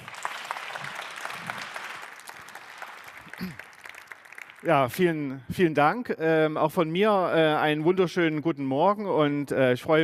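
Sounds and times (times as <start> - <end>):
audience applause: 0.0 - 5.1
speech: 3.4 - 3.6, 4.6 - 10.0.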